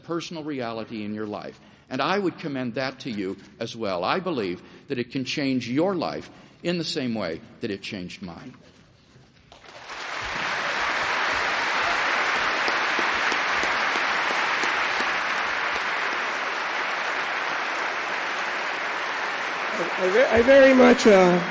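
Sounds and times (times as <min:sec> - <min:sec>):
speech: 0:00.1 - 0:08.7, 0:20.0 - 0:21.4
audience applause: 0:09.6 - 0:21.4.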